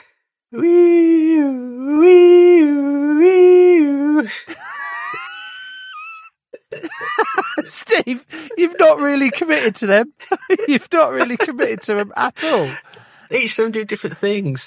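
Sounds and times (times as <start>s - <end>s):
speech: 0.5s - 1.0s, 8.1s - 14.6s
voice imitating an ambulance siren: 0.6s - 4.2s
laughter: 4.3s - 12.8s.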